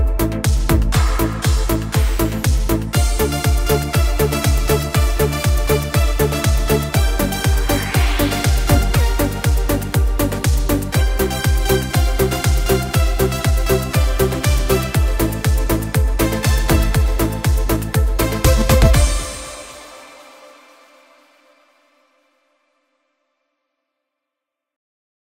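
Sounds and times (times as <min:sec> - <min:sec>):
dance instrumental on a Korg Pa4X arranger keyboard: 0:00.0 - 0:20.1.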